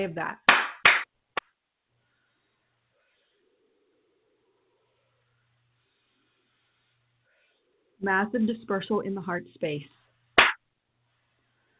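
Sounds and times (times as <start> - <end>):
speech: 0.0 - 0.5, 8.0 - 10.0
hand clapping for energy clearing: 0.5 - 1.5, 10.4 - 10.6.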